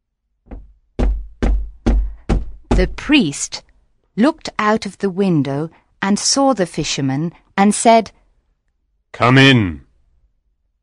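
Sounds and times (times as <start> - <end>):
knocking on a wooden door: 0.5 - 3.1
speech: 2.8 - 8.2, 9.1 - 9.8.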